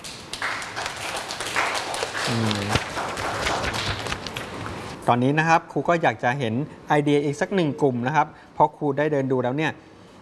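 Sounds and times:
classroom applause: 0.0s - 4.7s
speech: 2.3s - 3.5s, 5.1s - 9.9s.

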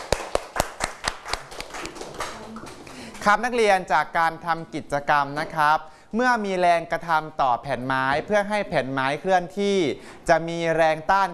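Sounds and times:
students clapping hands: 0.0s - 3.7s
speech: 3.2s - 11.3s.

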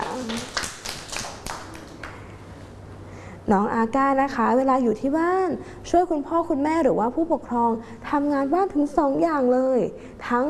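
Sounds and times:
hands clapping: 0.0s - 2.3s
speech: 3.5s - 10.4s.

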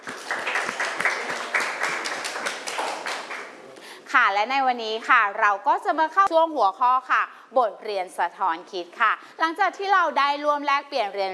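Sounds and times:
students applauding: 0.0s - 3.6s
speech: 4.1s - 11.3s.

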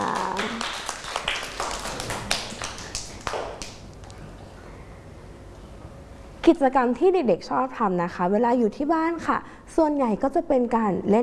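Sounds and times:
hand clapping: 0.0s - 4.2s
speech: 6.5s - 11.2s.

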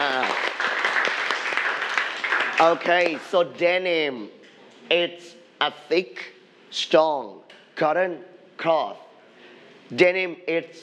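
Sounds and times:
students clapping in a classroom: 0.0s - 3.5s
speech: 2.6s - 9.0s, 9.9s - 10.8s.

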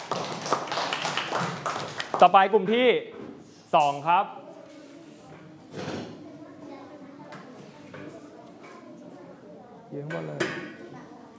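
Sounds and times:
group of students clapping hands: 0.0s - 2.3s
speech: 2.2s - 4.4s, 9.9s - 10.5s.

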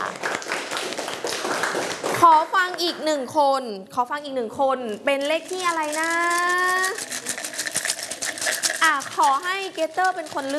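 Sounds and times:
classroom children clapping: 0.0s - 2.4s
speech: 2.2s - 6.9s, 8.9s - 10.5s.

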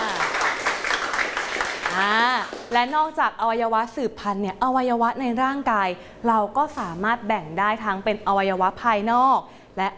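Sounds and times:
children in a classroom clapping for a classmate: 0.0s - 3.0s
speech: 2.0s - 9.9s.

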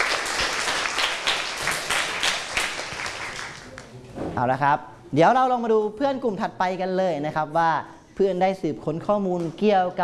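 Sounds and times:
group applauding: 0.0s - 3.9s
speech: 4.4s - 10.0s.

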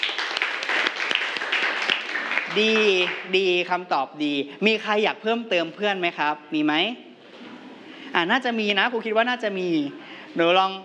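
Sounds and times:
classroom applause: 0.0s - 3.3s
speech: 2.6s - 7.1s, 8.2s - 10.8s.

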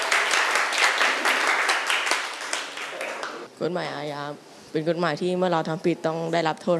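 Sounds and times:
classroom applause for a student: 0.0s - 3.5s
speech: 3.6s - 6.7s.

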